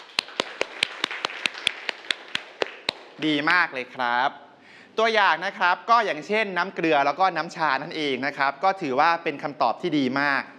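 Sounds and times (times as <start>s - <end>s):
students clapping: 0.0s - 3.3s
speech: 3.2s - 4.4s, 5.0s - 10.5s.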